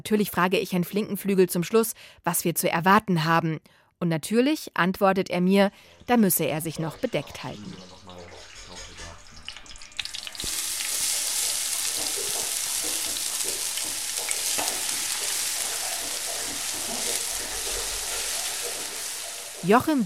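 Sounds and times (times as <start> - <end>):
speech: 0.0 - 8.0, 19.6 - 20.0
shallots sautéing in a pan in a restaurant kitchen: 9.5 - 20.0.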